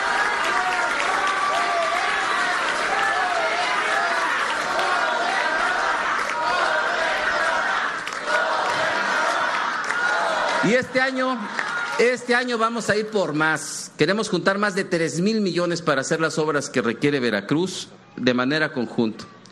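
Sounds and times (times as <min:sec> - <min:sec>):
cheering and shouting voices: 0:00.0 - 0:12.2
crowd applauding: 0:00.0 - 0:12.6
speech: 0:10.6 - 0:19.4.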